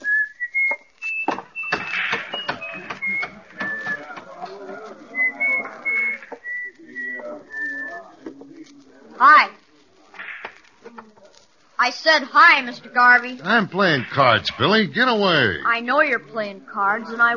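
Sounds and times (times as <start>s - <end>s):
man whistling while walking: 0.0s - 4.2s, 5.1s - 8.1s
speech: 11.9s - 17.3s.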